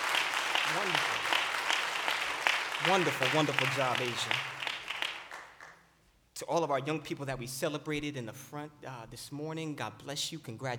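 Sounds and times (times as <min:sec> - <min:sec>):
crowd applauding in a large room: 0:00.0 - 0:05.8
speech: 0:00.7 - 0:01.3, 0:02.8 - 0:04.5, 0:06.4 - 0:10.7.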